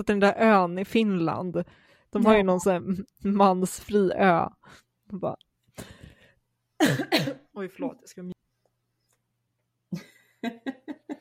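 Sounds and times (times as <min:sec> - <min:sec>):
speech: 0:00.0 - 0:06.0, 0:06.8 - 0:08.3, 0:09.9 - 0:11.1
person coughing: 0:06.8 - 0:07.5.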